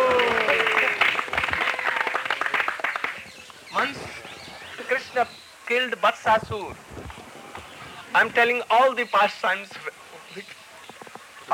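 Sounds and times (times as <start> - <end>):
hand clapping: 0.0 - 3.6
speech: 5.2 - 6.9, 8.2 - 10.6.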